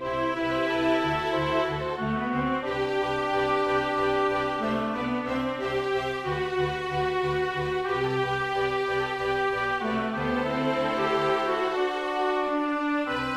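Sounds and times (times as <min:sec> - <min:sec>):
oboe: 0:00.0 - 0:13.3
strings: 0:00.0 - 0:13.3.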